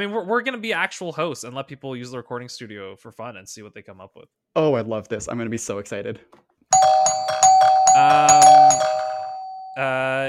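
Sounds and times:
speech: 0.0s - 7.0s, 8.0s - 9.0s, 9.8s - 10.2s
doorbell ringing with multi-note electronic chime: 6.8s - 10.2s.

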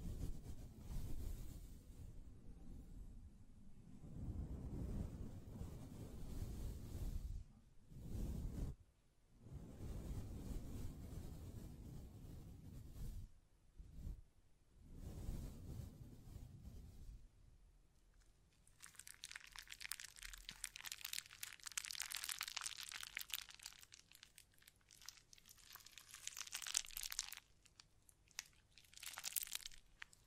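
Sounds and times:
deep rubbing of hands brushing a microphone: 0.0s - 3.0s, 4.0s - 8.8s, 9.4s - 14.2s, 14.8s - 17.3s, 18.2s - 30.2s
dense bright crinkly scratching: 18.2s - 30.2s.

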